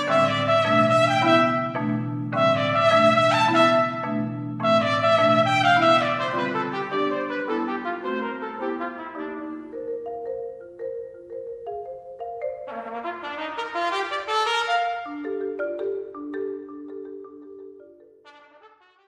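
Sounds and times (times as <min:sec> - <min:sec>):
trumpet sonata: 0:00.0 - 0:09.8, 0:12.7 - 0:15.4, 0:18.2 - 0:19.0.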